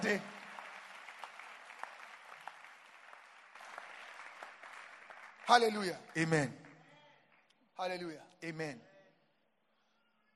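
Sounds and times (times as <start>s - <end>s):
speech: 0.0s - 0.4s, 5.5s - 6.6s, 7.8s - 8.9s
crowd clapping: 0.0s - 8.1s.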